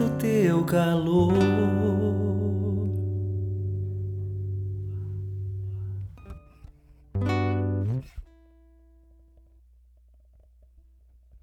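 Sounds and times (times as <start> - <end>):
person singing: 0.0 - 3.4
acoustic guitar: 0.0 - 9.4.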